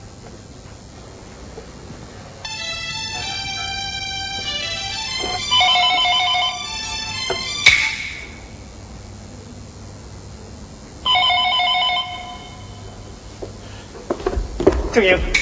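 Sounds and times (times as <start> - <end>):
telephone ringing: 2.4 - 8.7, 11.0 - 13.3
speech: 15.0 - 15.4.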